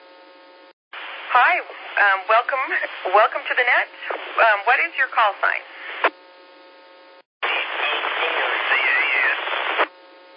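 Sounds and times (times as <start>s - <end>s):
steady humming radio carrier: 0.1s - 10.3s
ham radio static: 1.0s - 6.2s, 7.4s - 9.9s
speech: 1.3s - 6.2s.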